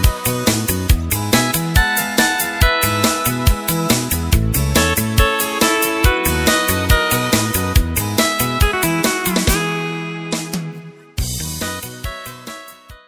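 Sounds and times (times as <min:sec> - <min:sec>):
MIDI file music playback: 0:00.0 - 0:13.0.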